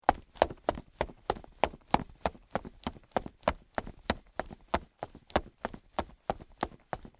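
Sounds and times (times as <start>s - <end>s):
woman's boots running on wood: 0.1s - 7.1s.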